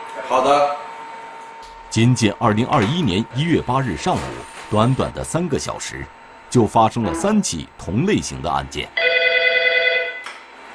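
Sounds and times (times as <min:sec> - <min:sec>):
speech: 0:00.2 - 0:00.8, 0:02.0 - 0:09.1
telephone ringing with buzzy electronic tone: 0:09.0 - 0:10.2.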